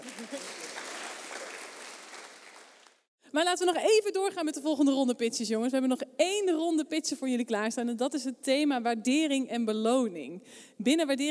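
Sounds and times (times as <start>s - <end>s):
audience applause: 0.0s - 3.1s
speech: 3.3s - 11.2s.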